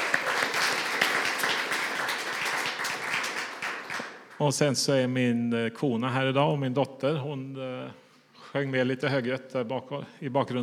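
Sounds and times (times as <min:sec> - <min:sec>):
audience applause: 0:00.0 - 0:04.4
speech: 0:04.4 - 0:10.6.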